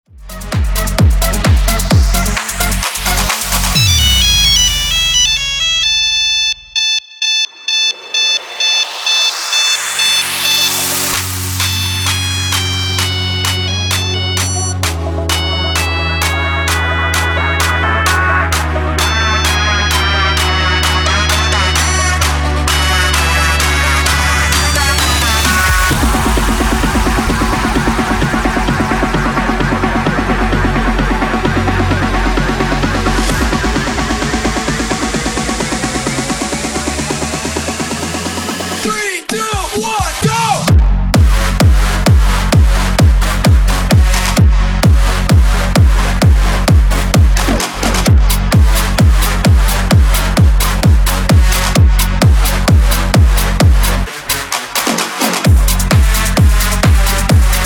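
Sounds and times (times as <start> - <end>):
slowed-down EDM banger: 0.1 - 57.6.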